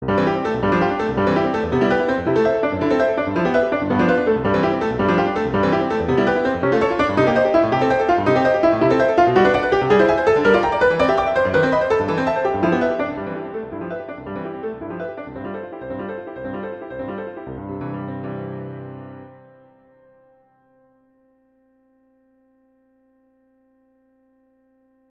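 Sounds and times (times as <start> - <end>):
agitato classical piece: 0.0 - 19.4.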